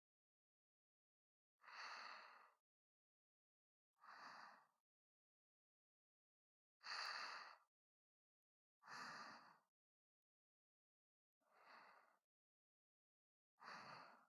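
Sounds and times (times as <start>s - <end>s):
person breathing in sleep: 1.6s - 2.6s, 4.0s - 4.8s, 6.8s - 7.7s, 8.9s - 9.7s, 11.5s - 12.2s, 13.6s - 14.2s.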